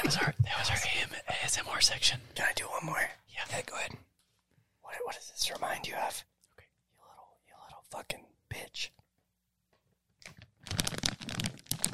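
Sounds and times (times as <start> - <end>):
speech: 0.1 - 4.1, 4.9 - 6.3, 7.9 - 9.0
plastic wrapping torn off a Preparation H wipe package: 10.2 - 11.9.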